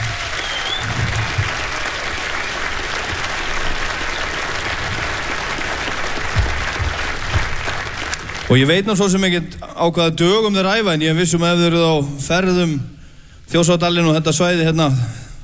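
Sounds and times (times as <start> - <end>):
audience clapping for a band: 0.0 - 9.2
speech: 8.5 - 12.9, 13.5 - 15.2.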